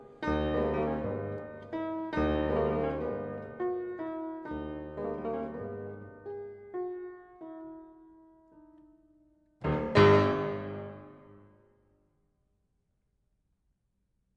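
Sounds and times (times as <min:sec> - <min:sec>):
piano prelude in G sharp minor: 0:00.0 - 0:08.9, 0:09.6 - 0:11.5.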